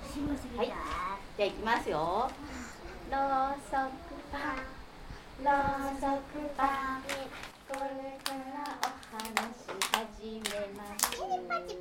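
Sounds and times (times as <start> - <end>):
speech: 0.2 - 4.8, 5.4 - 11.7
children clapping their hands at a storytime reading: 7.1 - 11.2.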